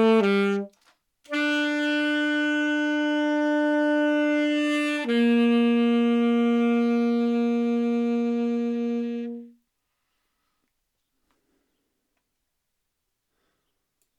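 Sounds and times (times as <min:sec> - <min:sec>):
saxophone: 0:00.0 - 0:09.7.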